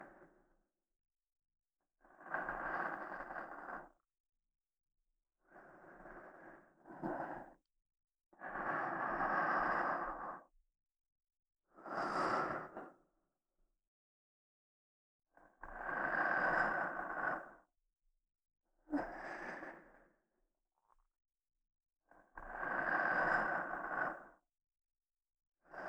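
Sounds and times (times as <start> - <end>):
soft sleep-inducing voice in right channel: 2.1 - 4.0, 5.5 - 7.6, 8.4 - 10.5, 11.8 - 13.0, 15.8 - 17.7, 18.9 - 20.1, 22.5 - 24.4.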